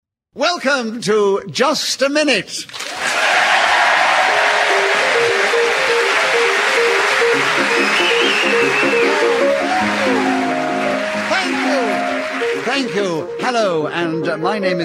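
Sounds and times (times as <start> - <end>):
speech: 0.4 - 3.1, 12.9 - 14.8
piano waltz played as theme music: 4.4 - 14.8.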